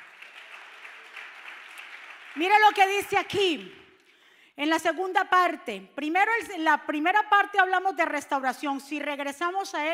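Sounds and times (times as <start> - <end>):
audience applause: 0.0 - 2.7
speech: 2.4 - 3.8, 4.6 - 9.9.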